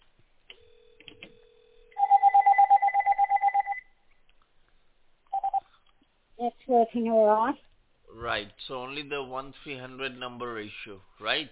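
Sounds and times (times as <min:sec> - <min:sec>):
landline telephone dial tone: 0:00.5 - 0:03.8, 0:05.3 - 0:05.6
landline telephone dialing beeps: 0:02.0 - 0:03.8, 0:05.3 - 0:05.6
speech: 0:06.7 - 0:11.5.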